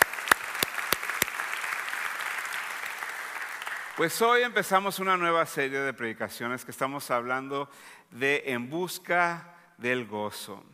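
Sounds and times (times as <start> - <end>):
audience applause: 0.0 - 4.0
speech: 4.0 - 10.7.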